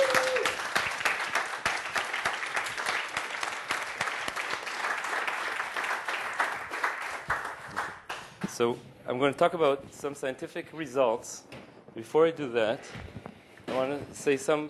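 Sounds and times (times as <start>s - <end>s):
audience applause: 0.0s - 8.2s
speech: 8.6s - 13.1s, 13.7s - 14.6s.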